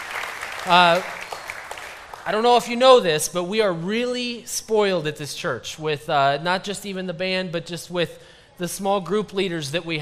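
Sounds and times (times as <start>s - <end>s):
audience applauding: 0.0s - 2.7s
speech: 0.6s - 1.2s, 2.3s - 10.0s.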